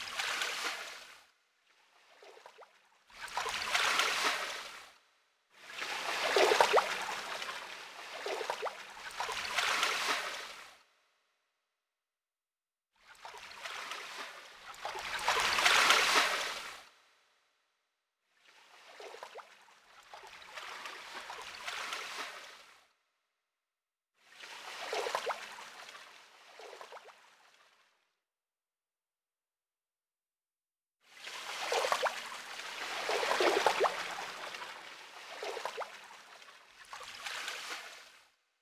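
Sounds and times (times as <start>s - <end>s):
river ambience: 0.0s - 10.8s, 13.2s - 17.0s, 18.4s - 22.9s, 24.3s - 27.8s, 31.1s - 38.3s.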